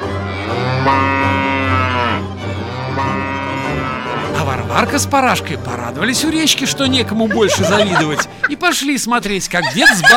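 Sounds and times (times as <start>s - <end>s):
milk cow mooing: 0.0s - 4.4s
speech: 0.9s - 1.2s, 4.7s - 10.1s
laughter: 6.7s - 10.1s.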